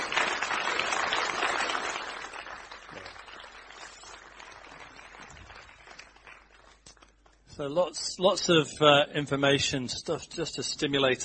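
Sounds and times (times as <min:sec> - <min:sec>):
audience applause: 0:00.0 - 0:07.4
speech: 0:07.6 - 0:11.2.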